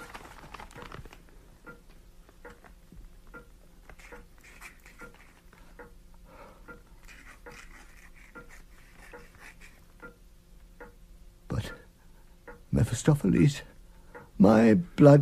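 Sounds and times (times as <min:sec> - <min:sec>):
pen scratching writing a deed: 0:07.1 - 0:09.8
speech: 0:12.8 - 0:13.7, 0:14.4 - 0:15.2.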